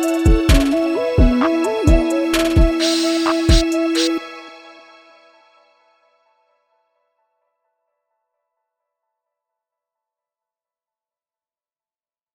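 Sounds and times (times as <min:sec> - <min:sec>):
plugg beat loop: 0:00.0 - 0:04.2.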